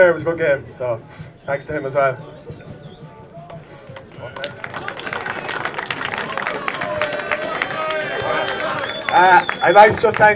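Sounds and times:
speech: 0.0 - 2.7, 4.2 - 4.9, 9.1 - 10.3
murmur of voices: 0.0 - 10.3
crowd applause: 3.5 - 10.3.

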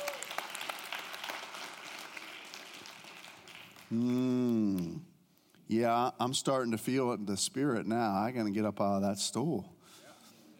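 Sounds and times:
audience applause: 0.0 - 4.3
speech: 3.9 - 5.0, 5.7 - 10.0.

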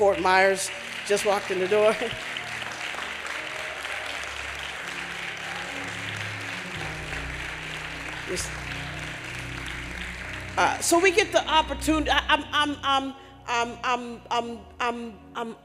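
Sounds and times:
speech: 0.0 - 2.3, 8.3 - 8.6, 10.6 - 15.6
audience clapping hands in welcome: 0.0 - 12.2.

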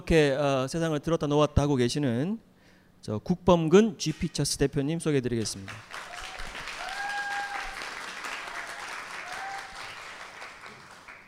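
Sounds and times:
speech: 0.1 - 6.1
audience applause: 5.7 - 11.2.

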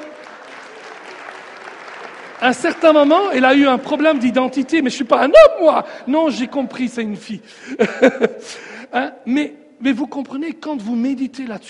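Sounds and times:
audience applause: 0.0 - 4.8
speech: 2.4 - 11.6
laughter: 7.6 - 8.6.

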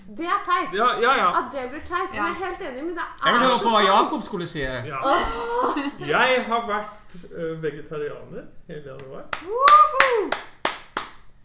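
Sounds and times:
speech: 0.1 - 10.5
laughter: 5.0 - 6.4
people clapping: 9.0 - 11.4.

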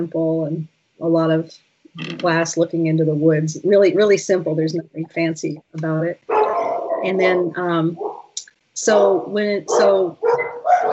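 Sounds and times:
speech: 0.0 - 6.3, 7.0 - 8.1, 8.8 - 10.2
several pet dogs barking at a house beside the woods: 6.2 - 10.9.

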